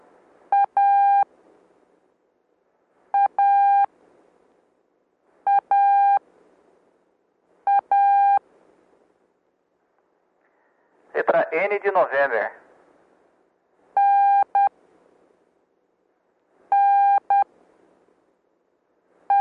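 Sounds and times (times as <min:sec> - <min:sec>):
Morse code tones: 0:00.5 - 0:01.2, 0:03.2 - 0:03.9, 0:05.5 - 0:06.2, 0:07.7 - 0:08.4, 0:14.0 - 0:14.7, 0:16.7 - 0:17.5
speech: 0:11.6 - 0:12.6.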